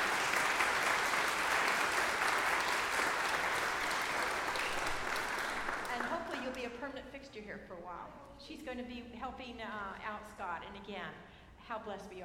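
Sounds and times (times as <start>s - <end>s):
church congregation applause welcoming a new member at a Sunday service: 0.0s - 6.6s
speech: 7.4s - 12.2s.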